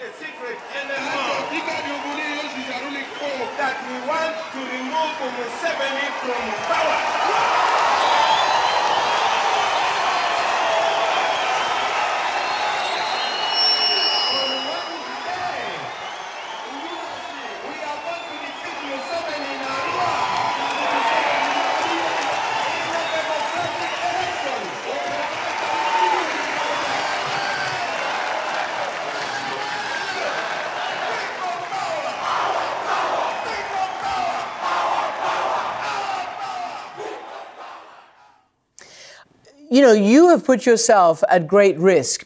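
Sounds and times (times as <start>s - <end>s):
large rally crowd cheering: 0.0s - 38.4s
speech: 4.1s - 7.8s, 39.8s - 42.2s.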